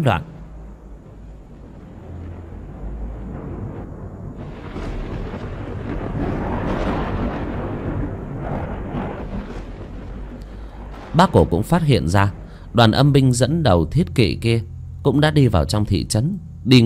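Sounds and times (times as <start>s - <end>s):
speech: 0.0s - 0.3s, 11.2s - 16.8s
thunder from lightning strikes in a storm: 0.0s - 16.8s.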